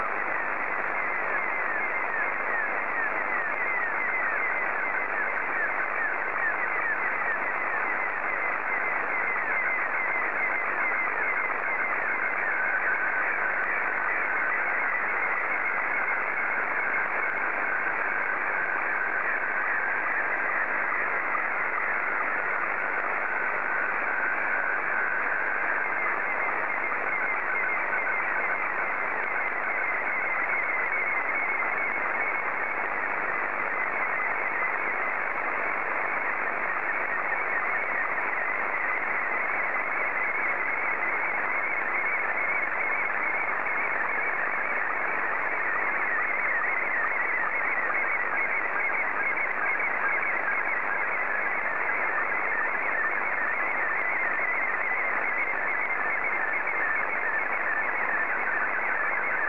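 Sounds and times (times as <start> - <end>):
SSTV Scottie 2 signal: 0.0 - 59.4.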